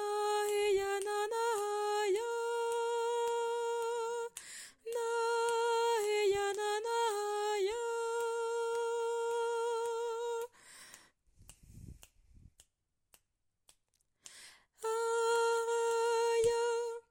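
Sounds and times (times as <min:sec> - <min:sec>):
tenor singing: 0:00.0 - 0:10.5, 0:14.8 - 0:17.0.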